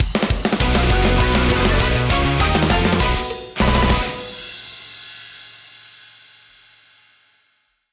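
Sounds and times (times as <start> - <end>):
win jingle: 0.6 - 4.7.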